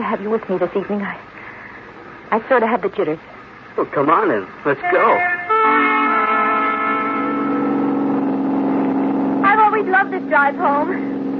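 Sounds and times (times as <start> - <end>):
speech: 0.0 - 1.3, 2.3 - 6.2, 9.8 - 11.2
car engine humming while driving on a road: 0.0 - 11.3.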